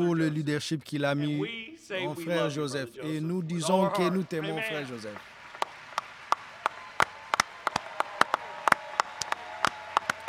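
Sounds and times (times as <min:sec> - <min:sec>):
speech: 0:00.0 - 0:05.3
audience rising to applaud with hand claps: 0:03.6 - 0:10.2.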